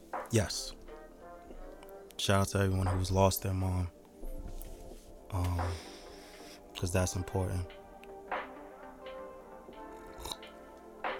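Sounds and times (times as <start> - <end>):
speech: 0.3 - 0.8, 2.2 - 4.0, 5.3 - 5.9, 6.8 - 7.8
person slurping a drink: 10.0 - 10.4.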